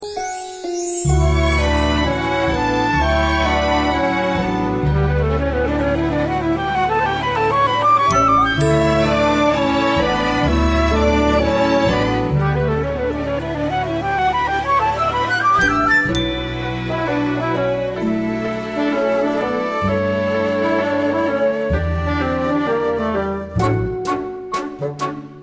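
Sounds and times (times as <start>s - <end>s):
musical accompaniment: 0.0s - 25.4s.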